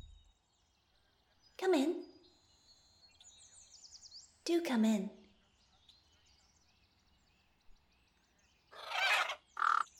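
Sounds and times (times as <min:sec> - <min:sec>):
speech: 0:01.6 - 0:02.1, 0:04.5 - 0:05.2
giant crow cawing: 0:08.7 - 0:09.9.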